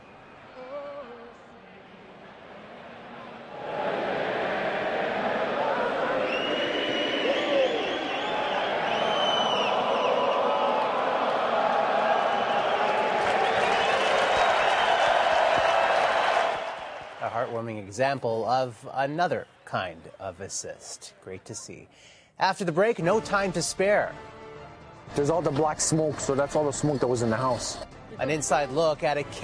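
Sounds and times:
arena crowd singing anthem: 0.0 - 17.0
arena crowd cheering and applause: 2.2 - 17.9
whistles: 6.2 - 10.8, 12.2 - 17.0
speech: 17.6 - 24.4, 25.1 - 29.4.

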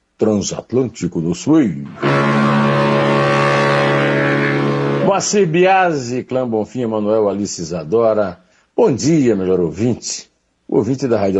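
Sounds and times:
speech: 0.2 - 2.5, 5.1 - 11.3
ship horn: 1.9 - 5.2.

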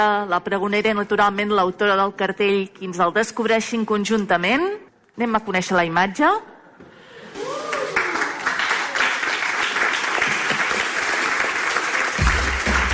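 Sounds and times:
speech: 0.0 - 6.5
audience applause at poster unveiling: 7.3 - 12.9.

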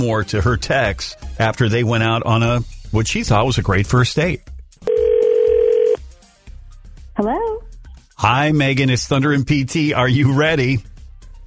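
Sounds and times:
speech: 0.0 - 4.5, 7.2 - 7.6, 8.2 - 10.9
telephone ringing tone: 4.9 - 6.0.

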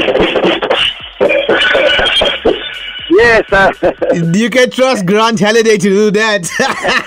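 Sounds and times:
drum hits played with one hand: 0.0 - 4.8
speech: 3.4 - 7.0
laughter: 3.5 - 4.5, 6.4 - 7.0.

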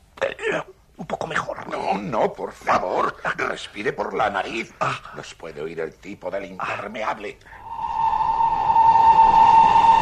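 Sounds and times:
speech: 0.5 - 7.6
arriving train whistle: 7.6 - 9.9.

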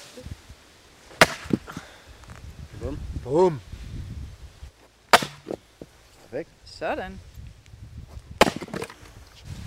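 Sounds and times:
wood splintering: 1.2 - 1.6, 5.1 - 5.6, 8.4 - 9.0
axe splitting firewood logs: 1.2 - 1.8, 5.1 - 5.6, 8.4 - 9.1
speech: 2.8 - 3.7, 6.3 - 7.3.

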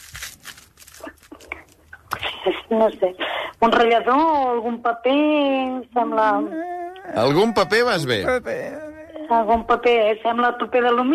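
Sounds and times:
aluminium foil crumpled by hand: 0.0 - 1.8
speech: 2.4 - 11.1.

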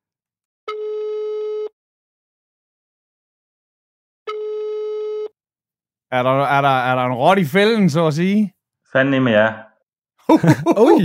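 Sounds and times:
phone call tone: 0.7 - 1.7, 4.3 - 5.4
speech: 6.1 - 9.7, 10.3 - 11.0
laughter: 10.3 - 11.0.

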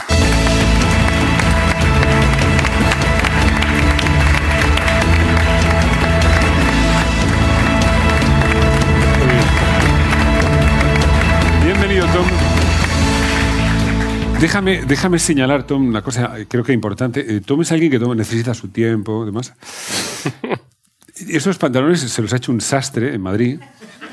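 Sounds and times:
audience applause: 0.0 - 15.5
speech: 14.4 - 24.1
laughter: 23.6 - 24.1.

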